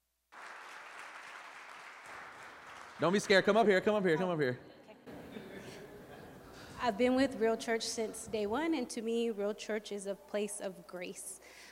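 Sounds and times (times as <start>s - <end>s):
audience applause: 0.3s - 3.8s
speech: 3.0s - 4.7s, 6.8s - 11.6s.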